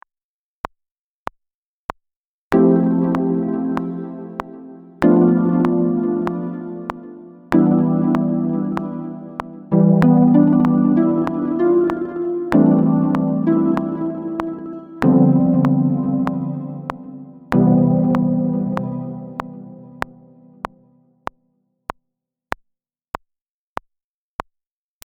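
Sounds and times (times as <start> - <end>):
plucked note: 2.6 - 20.6.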